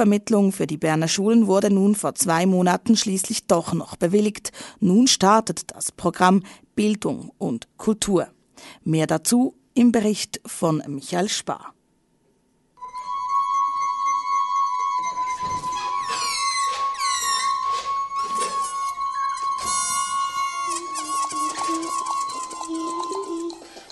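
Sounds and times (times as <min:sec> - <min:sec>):
speech: 0:00.0 - 0:11.8
ringing glass-like tone: 0:12.8 - 0:23.8
squeaky sliding balloon squeals and rubbing bursts: 0:14.6 - 0:23.5.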